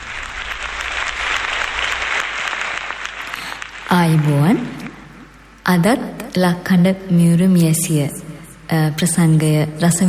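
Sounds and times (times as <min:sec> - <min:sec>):
concert audience applause welcoming a veteran female singer: 0:00.0 - 0:05.0
low hum: 0:00.0 - 0:06.3
speech: 0:03.9 - 0:04.8, 0:05.7 - 0:10.0.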